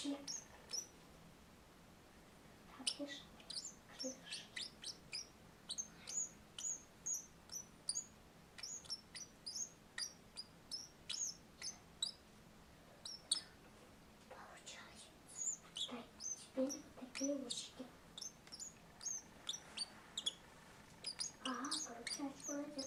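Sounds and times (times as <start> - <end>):
speech: 0.0 - 0.4, 3.0 - 3.3, 4.0 - 4.5
turquoise parrot song: 0.1 - 0.9, 2.8 - 12.2, 13.0 - 13.5, 15.4 - 22.8.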